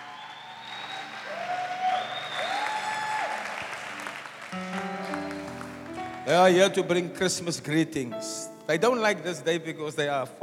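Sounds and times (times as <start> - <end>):
audience applause: 0.0 - 7.0
faint tonal sounds and brief music-like notes: 4.5 - 10.4
speech: 6.3 - 10.4.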